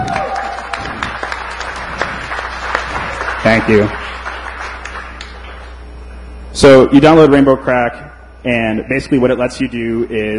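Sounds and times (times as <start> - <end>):
audience applause: 0.0 - 5.7
speech: 3.5 - 4.2, 6.6 - 10.3.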